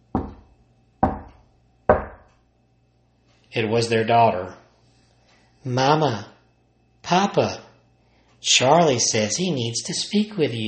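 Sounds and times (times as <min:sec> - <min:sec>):
heavy knocks on a wooden door: 0:00.1 - 0:02.3
speech: 0:03.6 - 0:04.6, 0:05.6 - 0:06.3, 0:07.0 - 0:07.6, 0:08.4 - 0:10.6.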